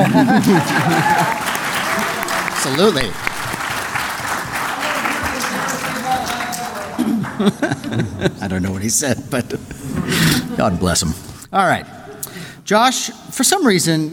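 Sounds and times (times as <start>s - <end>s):
laughter: 0.0s - 3.6s, 4.4s - 11.2s
audience applause: 0.0s - 7.9s
speech: 0.2s - 1.6s, 2.6s - 3.3s, 7.4s - 12.0s, 12.7s - 14.1s.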